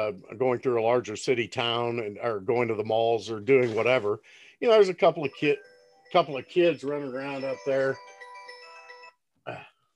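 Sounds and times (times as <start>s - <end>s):
speech: 0.0s - 8.1s, 9.5s - 9.7s
doorbell ringing: 5.2s - 9.2s.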